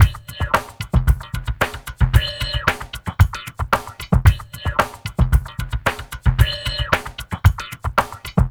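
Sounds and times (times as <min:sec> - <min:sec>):
liquid groove music: 0:00.0 - 0:08.4.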